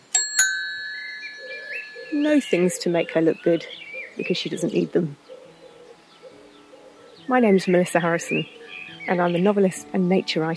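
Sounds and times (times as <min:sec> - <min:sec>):
bicycle bell ringing: 0:00.0 - 0:03.2
speech: 0:02.1 - 0:05.3, 0:07.3 - 0:10.5.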